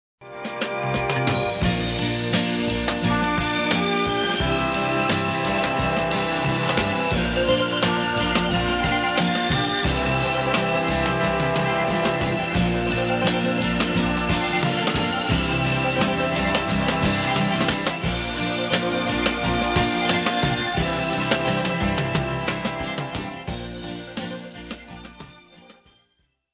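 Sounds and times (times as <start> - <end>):
end show music: 0.4 - 25.4.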